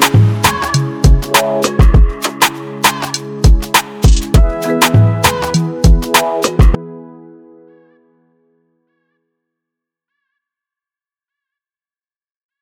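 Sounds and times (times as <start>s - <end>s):
music at 100 bpm in E major: 0.0s - 9.2s.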